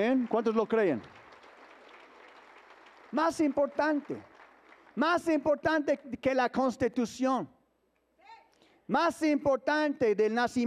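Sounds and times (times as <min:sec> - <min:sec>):
speech: 0:00.0 - 0:01.2, 0:03.1 - 0:04.3, 0:05.0 - 0:07.6, 0:08.9 - 0:10.6
audience applause: 0:00.0 - 0:05.2.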